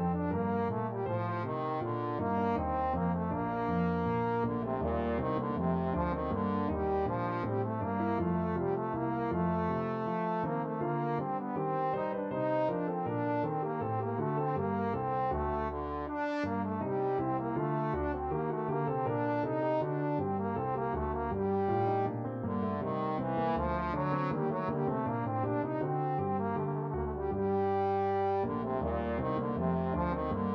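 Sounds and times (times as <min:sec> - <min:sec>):
trombone playing a bourree: 0:00.0 - 0:30.5.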